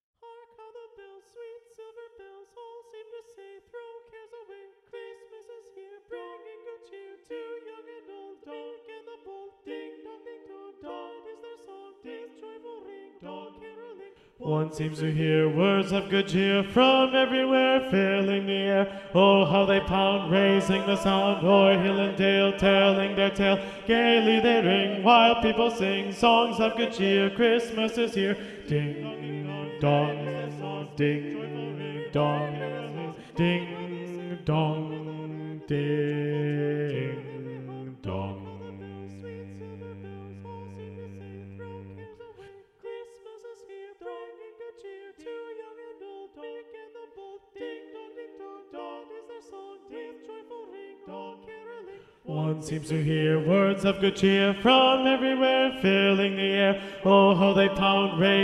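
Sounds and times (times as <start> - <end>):
SATB choir singing a carol, bass predominant: 0.2 - 58.4.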